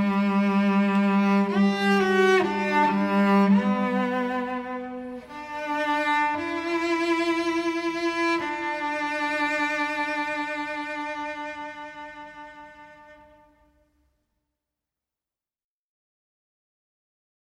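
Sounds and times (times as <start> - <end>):
cello: 0.0 - 13.9.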